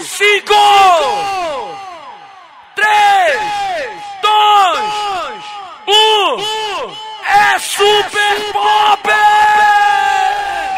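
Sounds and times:
crowd shouting and cheering at a live DJ event in Paragominas: 0:00.0 - 0:10.7.

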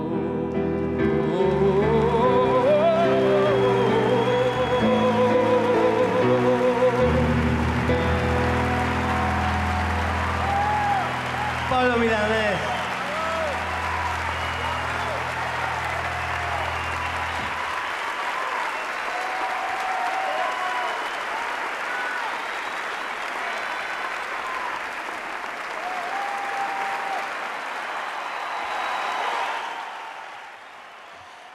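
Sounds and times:
song's last low notes: 0:00.0 - 0:18.4
audience applause after a song: 0:02.6 - 0:31.5
audience cheers and whistles: 0:02.8 - 0:31.5.

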